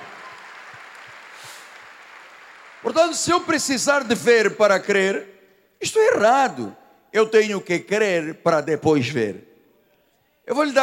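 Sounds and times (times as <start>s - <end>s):
audience applause: 0.0s - 3.2s
speech: 2.8s - 9.5s, 10.5s - 10.8s.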